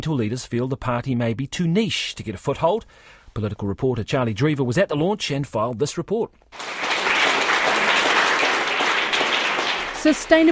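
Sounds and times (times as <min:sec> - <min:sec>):
speech: 0:00.0 - 0:06.9, 0:10.0 - 0:10.5
applause at the party launch at Zealandia in Wellington: 0:06.5 - 0:10.5.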